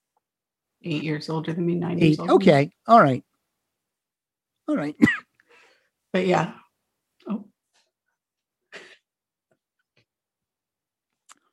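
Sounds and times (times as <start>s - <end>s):
speech: 0.8s - 3.3s, 4.7s - 5.2s, 6.1s - 6.6s
person coughing after inhaling wind: 5.0s - 5.3s.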